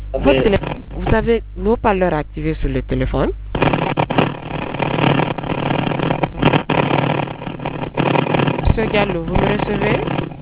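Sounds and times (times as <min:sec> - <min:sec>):
motorcycle engine roaring over telephone line: 0:00.0 - 0:01.4, 0:03.5 - 0:10.4
speech: 0:00.1 - 0:03.4, 0:08.8 - 0:10.2.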